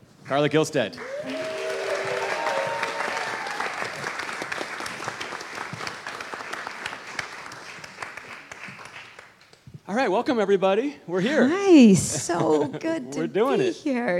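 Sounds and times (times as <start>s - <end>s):
speech: 0.3s - 1.4s, 9.9s - 14.1s
audience applause welcoming a performer at a live music and poetry show: 1.0s - 9.6s
laughter: 11.9s - 13.1s.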